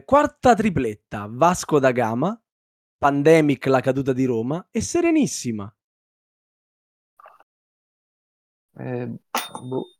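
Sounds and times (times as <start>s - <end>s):
speech: 0.1s - 2.4s, 3.0s - 5.8s, 8.8s - 9.9s
small bell ringing: 9.4s - 9.9s.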